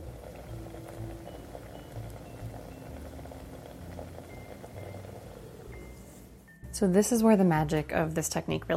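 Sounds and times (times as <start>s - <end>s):
cream simmering in a pan with carrots: 0.0s - 6.4s
soft hum: 0.0s - 8.7s
speech: 6.8s - 8.7s.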